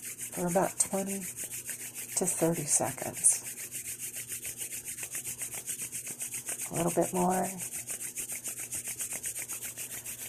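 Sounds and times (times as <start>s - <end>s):
hands rubbing together: 0.0s - 10.2s
speech: 0.4s - 1.6s, 2.2s - 3.5s, 6.7s - 7.7s.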